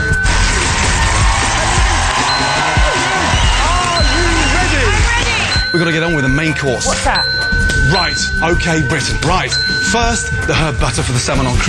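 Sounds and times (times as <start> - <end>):
many hands clapping: 0.3 - 5.7
whoops and cheering voices: 0.8 - 5.5
speech: 5.8 - 11.6.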